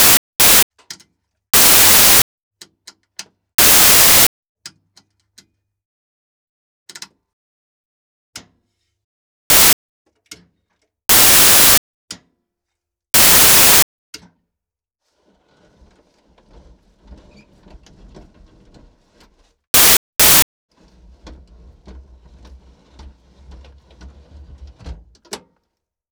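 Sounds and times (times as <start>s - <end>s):
buttons and switches in a North American P-51D Mustang cockpit: 0.0s - 0.6s, 1.6s - 2.2s, 3.6s - 4.3s, 9.5s - 9.8s, 11.1s - 11.8s, 13.2s - 13.8s, 19.8s - 20.4s.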